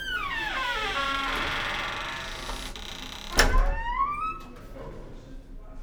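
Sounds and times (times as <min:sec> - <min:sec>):
door: 0:00.2 - 0:04.2.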